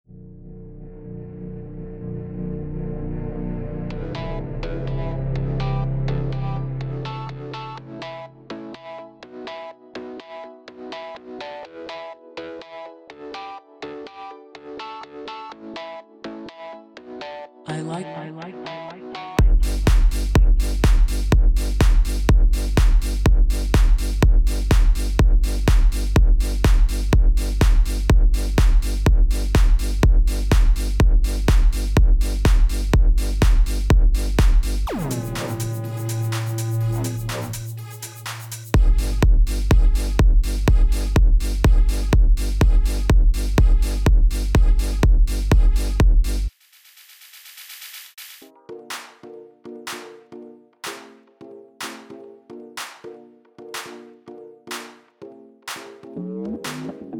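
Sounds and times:
techno music mix: 2.5 - 10.2, 17.7 - 46.5, 55.7 - 57.1.

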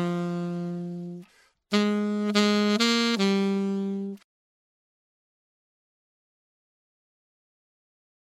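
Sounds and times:
main saxophone solo: 0.0 - 4.2.

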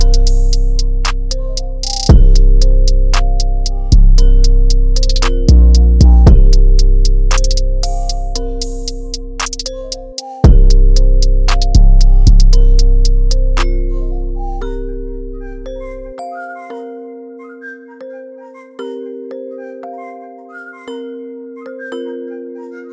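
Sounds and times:
high chill beat: 0.0 - 14.8.

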